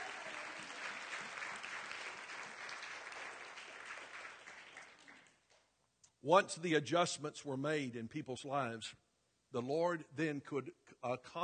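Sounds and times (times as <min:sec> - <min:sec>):
audience hand clapping: 0:00.0 - 0:05.7
speech: 0:06.2 - 0:11.4.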